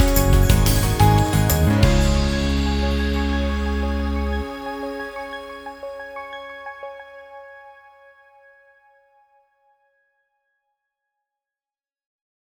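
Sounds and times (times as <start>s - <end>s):
corporate instrumental jingle: 0.0s - 6.2s.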